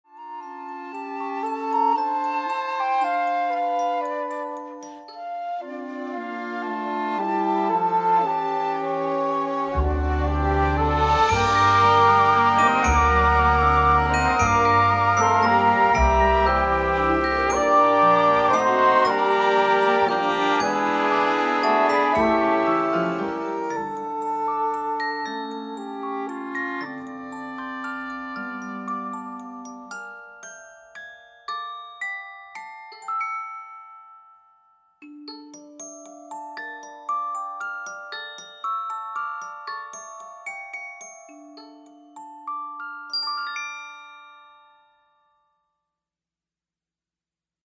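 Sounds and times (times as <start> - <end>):
audition accompaniment music: 0.2 - 29.9.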